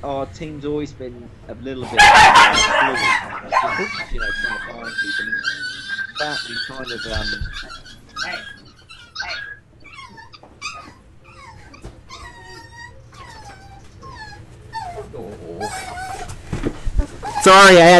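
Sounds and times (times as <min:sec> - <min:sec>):
speech: 0:00.0 - 0:08.4, 0:17.4 - 0:17.9
small pet dog growling: 0:01.9 - 0:16.4
small pet dog whimpering and yipping: 0:02.9 - 0:16.4, 0:17.0 - 0:17.6.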